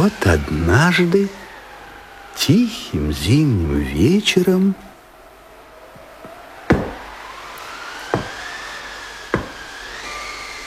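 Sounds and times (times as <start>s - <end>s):
speech: 0.0s - 1.4s, 2.4s - 4.9s
knocking on a door: 6.7s - 7.0s, 8.1s - 8.4s, 9.4s - 9.6s.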